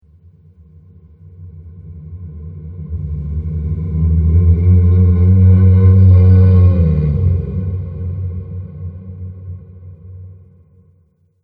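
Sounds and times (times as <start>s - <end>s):
horror music: 2.2s - 9.9s.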